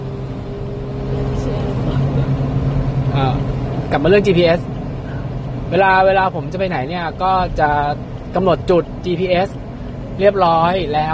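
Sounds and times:
engine and road rumble from inside a moving vehicle: 0.0 - 11.1
speech: 3.2 - 4.8, 5.7 - 9.6, 10.2 - 11.1.

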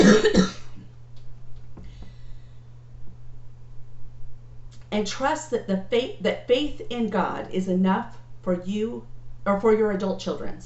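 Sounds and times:
cough from scratchy throat: 0.0 - 0.8
steady low hum: 0.0 - 10.6
faint small clicks: 4.7 - 4.9
speech: 4.9 - 10.6.

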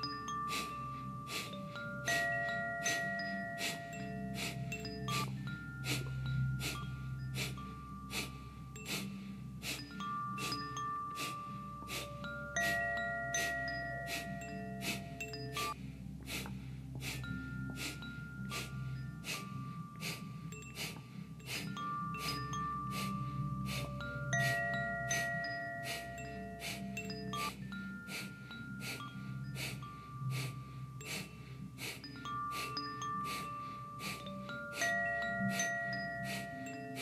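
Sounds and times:
music: 0.0 - 36.9
rapid forceful yogic breath of fire Kapalabhati pranayama: 0.0 - 36.9.

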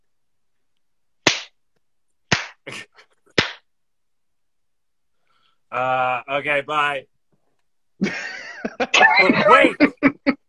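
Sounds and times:
hand clap: 1.2 - 1.6, 2.3 - 2.6, 3.4 - 3.7
speech: 2.7 - 2.9, 5.7 - 7.1, 8.8 - 10.2
laughter: 8.0 - 10.4.

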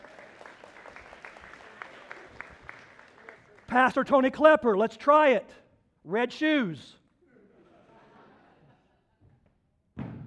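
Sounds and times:
audience clapping hands: 0.0 - 4.0
speech: 3.7 - 7.0
laughter: 7.3 - 9.2.

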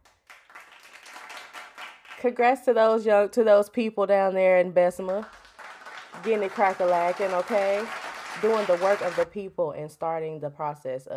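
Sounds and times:
hand clapping: 0.0 - 2.3, 5.1 - 9.3
speech: 2.2 - 5.4, 6.2 - 11.1.

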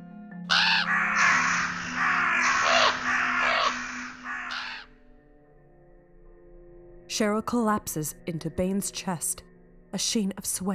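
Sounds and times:
birds giving harsh drawn-out caws: 0.5 - 4.9
speech: 7.2 - 10.7.

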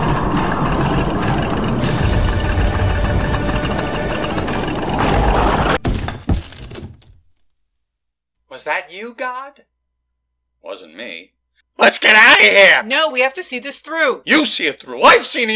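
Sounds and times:
thuds: 0.0 - 7.5
whole house rumbling and vibrating: 0.0 - 7.6
speech: 8.8 - 9.7, 10.6 - 15.5.

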